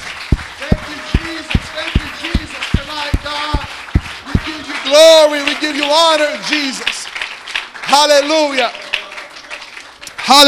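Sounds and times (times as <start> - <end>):
audience hand clapping: 0.0 - 10.4
speech: 5.0 - 6.9, 7.9 - 8.8, 10.3 - 10.4.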